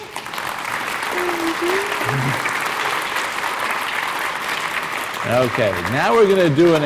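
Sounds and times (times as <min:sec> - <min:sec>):
crowd applauding: 0:00.0 - 0:06.8
faint voice-like tone: 0:01.1 - 0:02.4
speech: 0:01.6 - 0:02.5, 0:05.2 - 0:06.8.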